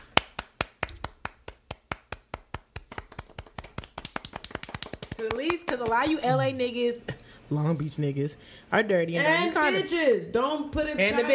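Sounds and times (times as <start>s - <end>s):
round of applause: 0.0s - 6.2s
speech: 5.2s - 11.3s.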